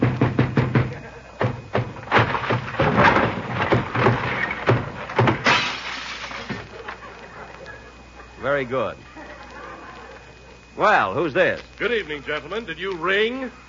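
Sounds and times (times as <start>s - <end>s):
door being broken down: 0.0s - 7.1s
wood crashing and splintering: 0.0s - 7.1s
laughter: 0.8s - 1.6s, 6.5s - 10.8s
speech: 8.6s - 9.1s, 10.8s - 13.6s.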